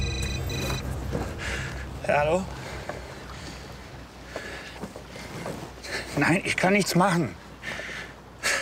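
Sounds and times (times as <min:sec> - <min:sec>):
steady low boat rumble: 0:00.0 - 0:04.2
wind: 0:00.0 - 0:08.5
speech: 0:02.1 - 0:02.6, 0:06.2 - 0:07.4.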